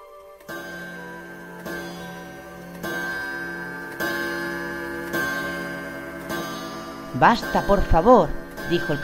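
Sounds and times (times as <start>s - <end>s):
clock ticking: 0.4s - 9.0s
speech: 7.2s - 9.0s.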